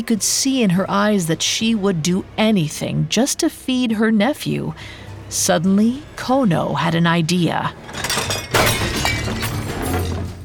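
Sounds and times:
speech: 0.0 - 8.2
bowls knocked off table shattering: 7.8 - 10.4.

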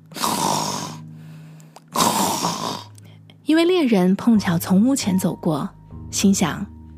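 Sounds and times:
loud rasping snores: 0.1 - 1.1, 1.9 - 3.0
speech: 3.5 - 6.7.

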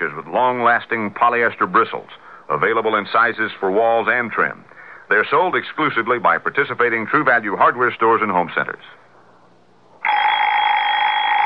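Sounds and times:
speech: 0.0 - 9.0
Baby Ben alarm clock ringing: 10.0 - 11.4.

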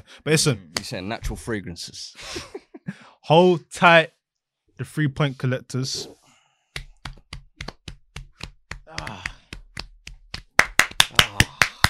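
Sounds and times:
speech: 0.1 - 4.2, 4.8 - 6.2
hand clap: 6.7 - 11.8.

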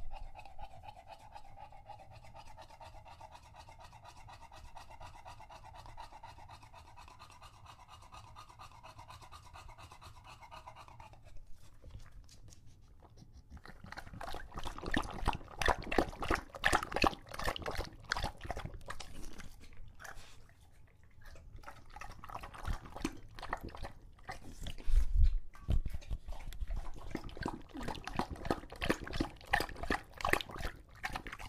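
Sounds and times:
English Bulldog panting: 0.0 - 31.4.

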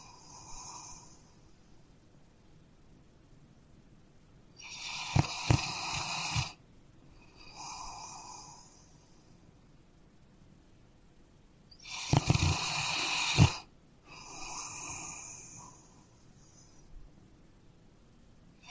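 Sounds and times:
dog snoring: 0.0 - 1.2, 4.6 - 6.6, 7.2 - 8.9, 11.8 - 16.7.

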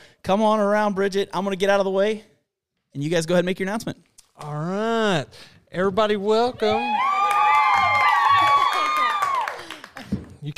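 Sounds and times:
speech: 0.3 - 2.3, 2.9 - 7.1
applause and cheering for an announcement: 6.8 - 10.3.

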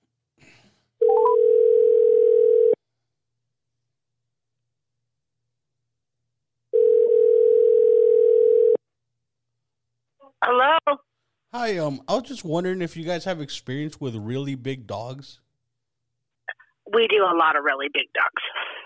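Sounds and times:
telephone ringback tone: 1.0 - 2.8, 6.7 - 8.8
speech: 11.6 - 15.4, 16.9 - 18.7.

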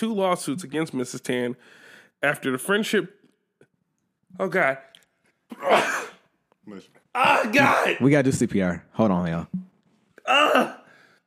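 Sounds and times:
speech: 0.0 - 3.2, 4.3 - 4.9, 5.5 - 6.1, 6.7 - 9.7, 10.3 - 10.8
person sneezing: 5.5 - 6.3, 10.3 - 10.9.

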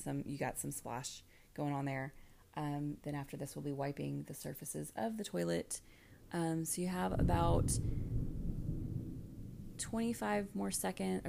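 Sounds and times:
speech: 0.0 - 8.2, 9.8 - 11.2
thunder rumbling during a thunderstorm: 6.9 - 11.2.

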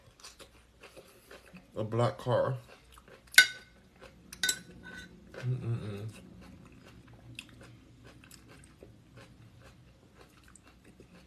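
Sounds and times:
chewing leftovers: 0.0 - 1.8, 2.6 - 11.2
speech: 1.8 - 2.7, 5.4 - 6.2
cutlery clinking against a dish: 3.4 - 3.7, 4.4 - 5.1
low murmur: 4.4 - 9.7.

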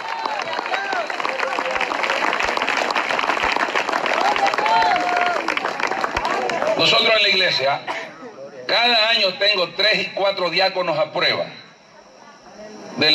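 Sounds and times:
whoops and cheering voices: 0.0 - 2.2, 4.1 - 5.6
audience applause: 0.0 - 7.4
speech: 6.8 - 8.0, 8.7 - 11.6, 13.0 - 13.1.

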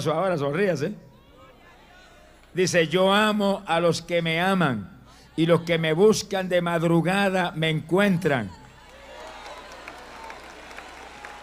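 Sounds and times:
speech: 0.0 - 1.1, 2.6 - 8.6
audience applauding: 8.6 - 11.4.

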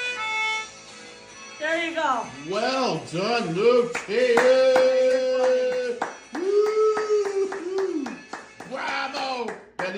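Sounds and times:
speech: 1.6 - 5.1
golf clap: 3.9 - 9.9.

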